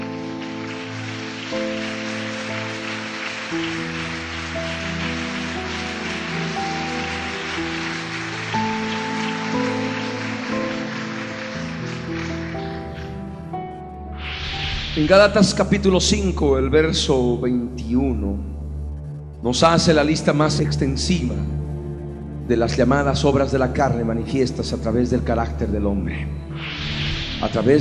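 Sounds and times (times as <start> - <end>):
audience applause: 0.0 - 13.5
speech: 15.0 - 18.5, 19.4 - 21.6, 22.5 - 27.7.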